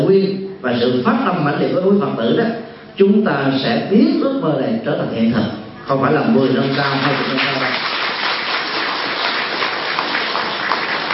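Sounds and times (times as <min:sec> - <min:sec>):
speech: 0:00.1 - 0:07.9
crowd applause: 0:06.4 - 0:11.1.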